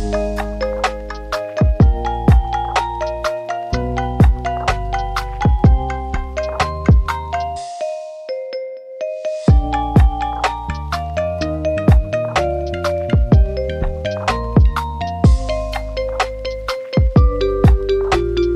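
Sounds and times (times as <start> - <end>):
lofi hip hop music: 0.0 - 8.3, 9.1 - 18.5.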